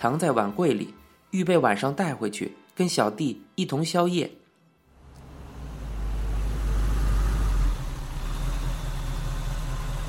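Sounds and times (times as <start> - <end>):
speech: 0.0 - 4.4
bus engine running: 5.0 - 10.0.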